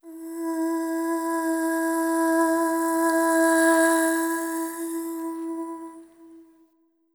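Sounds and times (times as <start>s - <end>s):
ethnic female vocals: 0.0s - 6.5s.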